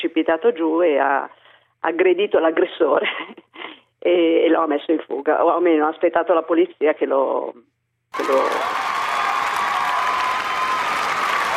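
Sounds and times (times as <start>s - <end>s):
speech: 0.1s - 3.4s, 4.0s - 8.8s
applause: 8.2s - 11.5s.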